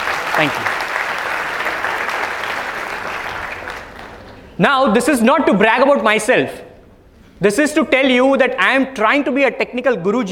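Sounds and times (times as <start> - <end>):
small audience clapping: 0.0 - 4.6
speech: 0.4 - 0.8, 4.6 - 6.7, 7.4 - 10.2.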